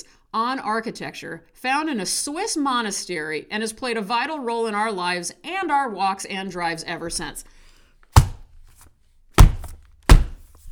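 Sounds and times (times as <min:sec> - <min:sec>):
speech: 0:00.0 - 0:07.6
book slamming shut: 0:08.2 - 0:08.5, 0:09.4 - 0:10.6.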